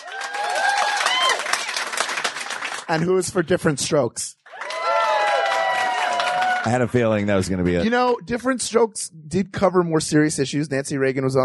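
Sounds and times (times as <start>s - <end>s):
whoops and cheers: 0.0s - 1.8s, 4.5s - 6.8s
audience applause: 0.0s - 3.2s, 4.5s - 7.2s
speech: 2.9s - 4.4s, 6.6s - 11.4s.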